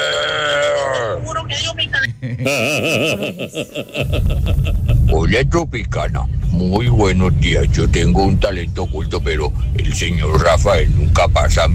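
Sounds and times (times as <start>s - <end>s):
person imitating a bull with the voice: 0.0s - 1.2s
laughter: 2.1s - 5.4s
speech: 2.4s - 11.7s.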